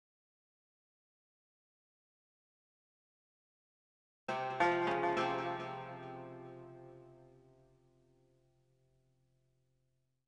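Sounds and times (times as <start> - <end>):
strings: 4.3 - 7.6.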